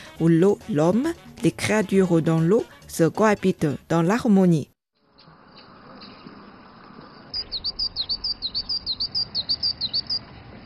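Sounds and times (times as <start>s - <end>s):
speech: 0.2s - 4.7s
melodious birdsong at a water garden: 7.4s - 10.4s.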